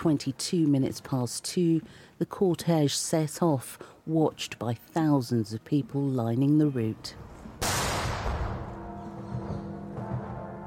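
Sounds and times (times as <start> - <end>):
speech: 0.0 - 7.3
field gun firing during the Queen's funeral cortege: 7.6 - 8.8.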